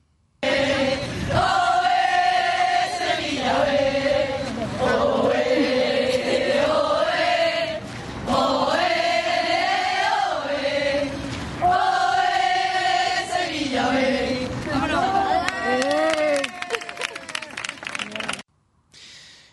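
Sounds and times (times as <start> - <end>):
football fans chanting in stadium: 0.4 - 15.4
rhythmic clapping: 15.8 - 18.5.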